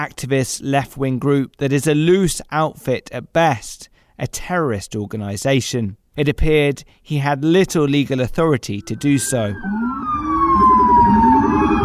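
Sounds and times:
speech: 0.0 - 10.2
police convoy sirens screeching near Prospect Park: 8.8 - 11.8.

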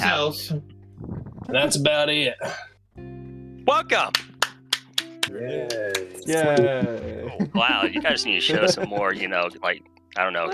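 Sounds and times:
speech: 0.3 - 3.1, 3.7 - 4.2, 5.3 - 10.5
sparse hand claps: 4.0 - 6.7
laughter: 5.3 - 10.5.

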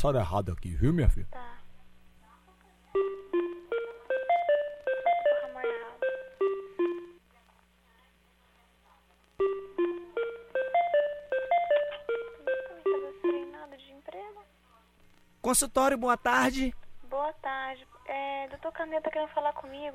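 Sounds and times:
speech: 0.0 - 1.5, 15.5 - 19.9
electronic telephone hold tune while a call is transferred at a doctor's office: 3.0 - 7.2, 9.4 - 13.6.

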